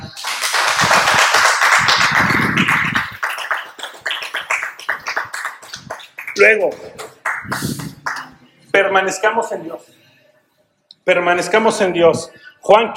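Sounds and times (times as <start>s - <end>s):
applause: 0.0s - 8.3s
speech: 6.4s - 7.7s, 8.8s - 10.0s, 11.1s - 12.9s.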